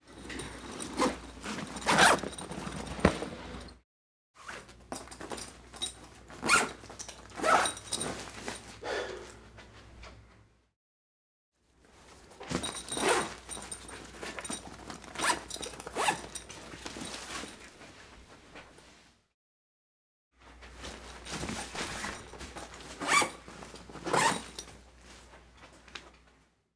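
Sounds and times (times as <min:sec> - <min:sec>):
gym bag opened, closed and handled: 0:00.0 - 0:03.8, 0:04.5 - 0:08.8, 0:12.5 - 0:17.9, 0:20.8 - 0:24.9
gym bag zipper zipped and unzipped quickly: 0:00.1 - 0:03.8, 0:06.4 - 0:08.0, 0:12.8 - 0:13.7, 0:15.1 - 0:16.5, 0:21.6 - 0:23.4, 0:24.0 - 0:24.6.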